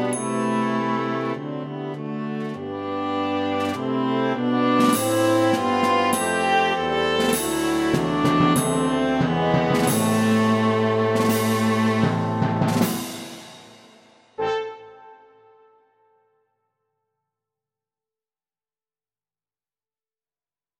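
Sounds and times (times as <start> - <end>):
viola melody: 0.0 - 12.9.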